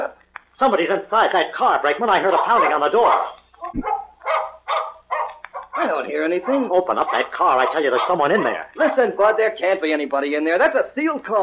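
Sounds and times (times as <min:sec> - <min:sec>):
speech: 0:00.6 - 0:04.0, 0:05.9 - 0:11.4
dog barking: 0:02.2 - 0:08.6.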